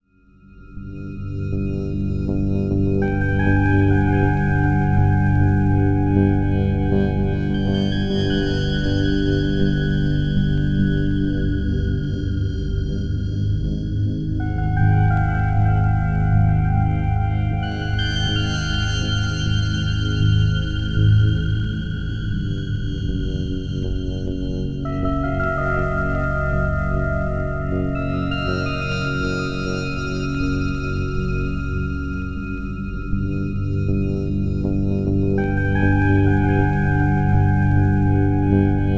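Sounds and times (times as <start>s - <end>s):
tense cutscene background music without percussion: 0.8s - 38.9s.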